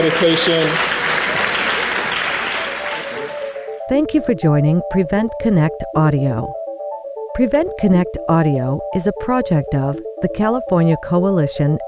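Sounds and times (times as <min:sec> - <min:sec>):
speech: 0:00.0 - 0:01.0, 0:03.9 - 0:06.6, 0:07.4 - 0:11.8
audience applauding panel members after a discussion: 0:00.0 - 0:03.8.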